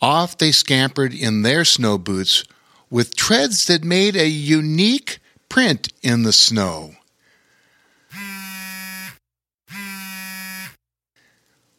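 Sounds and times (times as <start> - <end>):
speech: 0.0 - 7.0
faint steady hum: 0.0 - 8.5
phone text message alert buzzing: 8.1 - 10.8.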